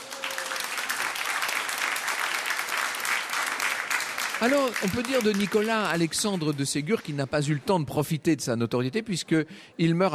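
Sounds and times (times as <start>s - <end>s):
audience applause: 0.0s - 7.2s
speech: 4.4s - 10.1s.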